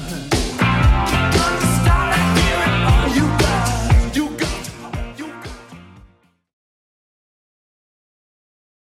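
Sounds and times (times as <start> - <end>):
80s drum machine beat at 117 bpm: 0.0 - 6.2.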